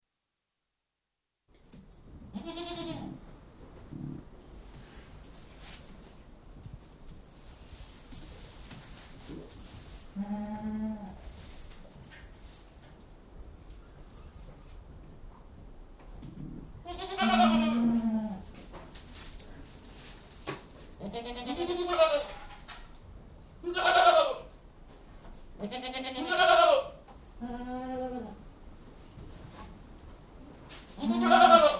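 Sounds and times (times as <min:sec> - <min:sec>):
shuffling and rustling movement: 0:01.7 - 0:16.6, 0:17.2 - 0:23.2, 0:28.6 - 0:31.7
goat bleating: 0:02.3 - 0:03.2, 0:16.8 - 0:18.4, 0:21.0 - 0:22.4, 0:23.6 - 0:24.5, 0:25.6 - 0:28.4, 0:31.0 - 0:31.7.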